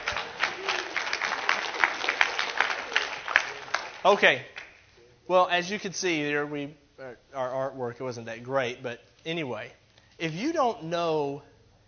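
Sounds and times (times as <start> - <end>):
audience hand clapping: 0.0 - 4.9
speech: 4.0 - 4.5, 5.3 - 11.5.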